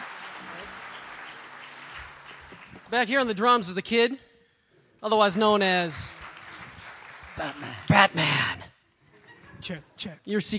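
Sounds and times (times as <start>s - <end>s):
audience applause for the guitarist at a live band performance: 0.0s - 3.0s, 5.8s - 8.4s
speech: 2.9s - 4.3s, 5.0s - 6.2s, 7.4s - 8.6s, 9.6s - 10.5s.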